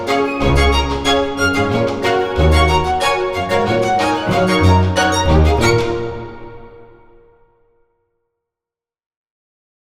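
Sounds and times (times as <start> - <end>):
graceful spiccato strings: 0.0 - 7.2.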